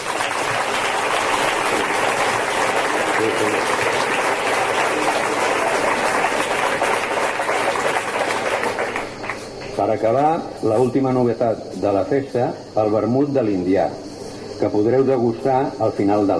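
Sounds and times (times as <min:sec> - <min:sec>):
audience applause: 0:00.0 - 0:09.8
speech: 0:09.9 - 0:14.0, 0:14.6 - 0:16.3.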